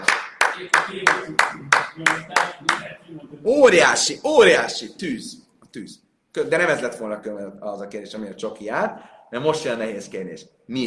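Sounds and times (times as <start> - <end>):
steady rhythmic clapping: 0.0 - 3.0
speech: 0.6 - 10.8.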